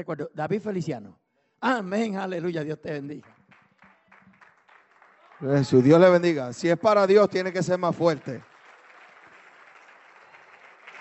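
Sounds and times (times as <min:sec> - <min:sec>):
speech: 0:00.0 - 0:03.4, 0:05.4 - 0:08.5
audience applause: 0:03.3 - 0:11.0.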